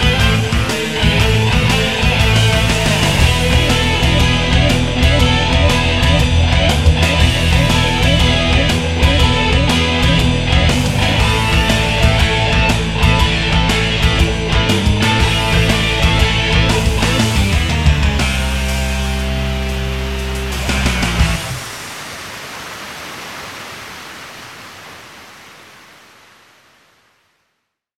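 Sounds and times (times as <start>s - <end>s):
live guitar playing: 0.0s - 21.6s.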